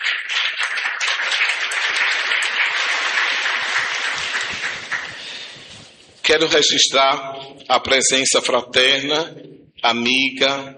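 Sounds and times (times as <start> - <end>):
audience applause: 0.0 - 5.9
speech: 6.3 - 10.7.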